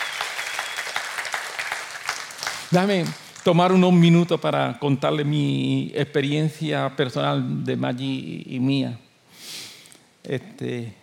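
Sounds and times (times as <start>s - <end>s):
audience applause: 0.0s - 3.5s
speech: 2.7s - 9.0s, 10.2s - 11.0s.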